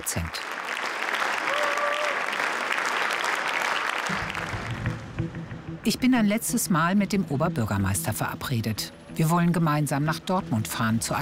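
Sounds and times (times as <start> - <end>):
speech: 0.0 - 0.5, 5.8 - 11.2
audience applause: 0.0 - 5.2.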